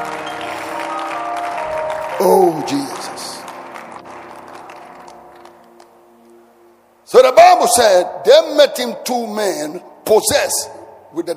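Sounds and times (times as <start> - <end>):
hands clapping: 0.0 - 6.0
speech: 2.2 - 3.3, 7.2 - 11.3.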